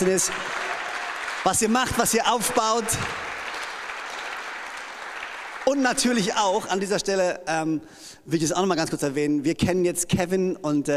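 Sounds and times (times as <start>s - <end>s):
speech: 0.0s - 0.5s, 1.4s - 3.2s, 5.7s - 10.9s
audience applause: 0.0s - 6.4s.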